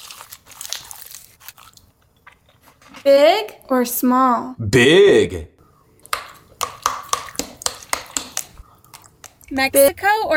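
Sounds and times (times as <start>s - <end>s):
crunchy bite and chewing of spicy fried chicken: 0.0s - 2.6s
speech: 3.0s - 5.5s, 9.5s - 10.3s.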